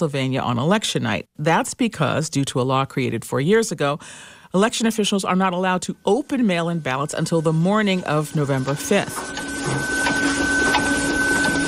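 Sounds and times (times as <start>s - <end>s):
speech: 0.0s - 10.2s
faint sustained tonal hum: 4.7s - 11.6s
ballot counting machines whirring at a Pennsylvania election office: 6.1s - 11.6s.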